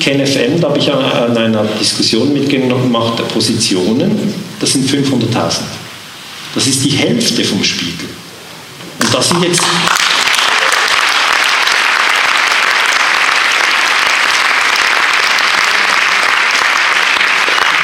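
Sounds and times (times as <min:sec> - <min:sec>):
speech: 0:00.0 - 0:05.8, 0:06.5 - 0:08.2, 0:09.1 - 0:10.1
audience applause: 0:09.1 - 0:17.8.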